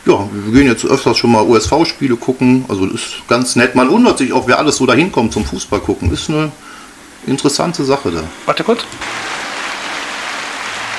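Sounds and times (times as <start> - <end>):
speech: 0.1 - 9.4
stadium crowd applause: 9.0 - 10.9.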